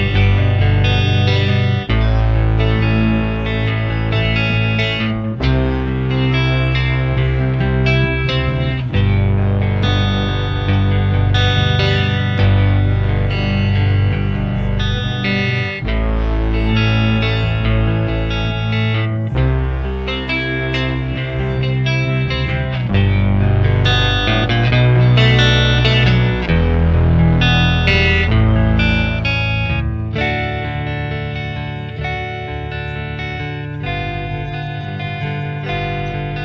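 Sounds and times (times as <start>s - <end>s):
isolated clean guitar: 0.0s - 36.4s.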